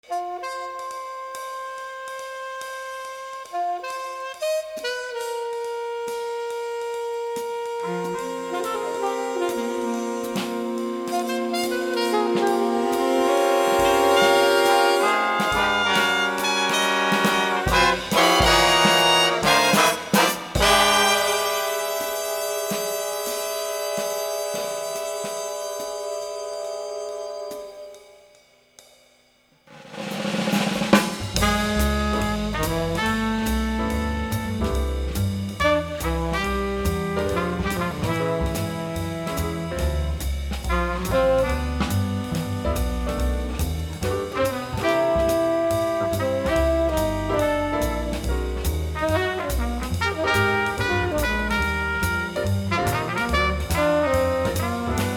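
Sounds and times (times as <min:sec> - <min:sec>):
jazz music: 0:00.0 - 0:28.4, 0:29.9 - 0:55.1.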